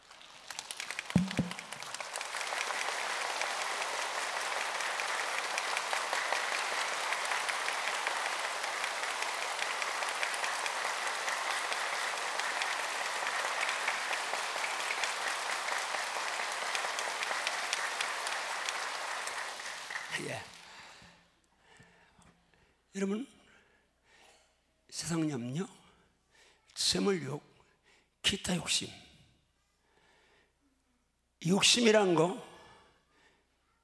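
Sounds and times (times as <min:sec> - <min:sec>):
audience clapping: 0:00.0 - 0:21.0
speech: 0:23.0 - 0:23.3, 0:25.1 - 0:25.8, 0:27.0 - 0:27.5, 0:28.4 - 0:29.0, 0:31.4 - 0:32.5.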